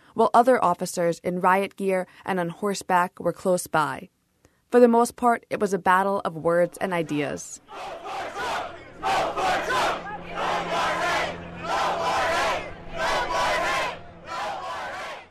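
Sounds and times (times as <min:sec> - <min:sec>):
speech: 0:00.2 - 0:09.2
supporters and protesters cheering and chanting at a political rally: 0:07.0 - 0:15.2.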